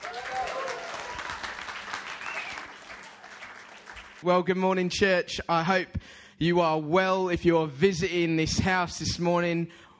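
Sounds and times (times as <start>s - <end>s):
church congregation applauding to welcome a pastor: 0.0s - 4.2s
speech: 4.2s - 9.9s.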